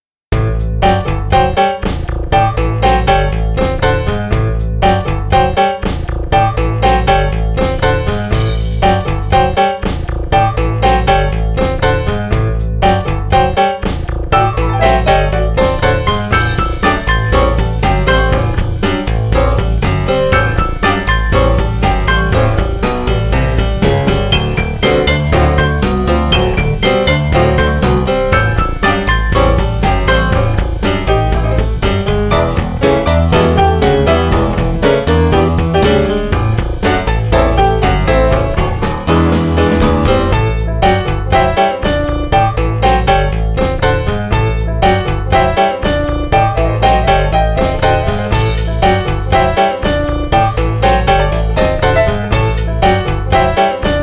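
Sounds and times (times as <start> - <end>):
funk music: 0.3 - 54.0.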